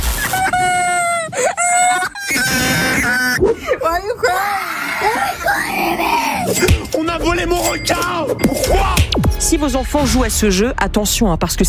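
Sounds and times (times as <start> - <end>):
young child screaming and crying: 0.3 - 3.4, 4.2 - 6.6
speech: 7.0 - 11.6.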